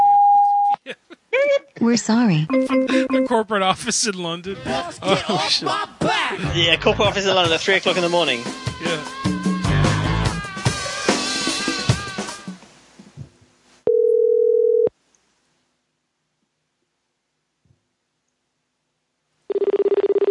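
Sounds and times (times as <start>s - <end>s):
laughter: 0.8s - 1.7s, 4.4s - 7.4s
speech: 1.8s - 9.2s
music: 2.5s - 3.4s, 6.4s - 12.6s
telephone ringing tone on the line: 13.9s - 14.9s, 19.5s - 20.3s.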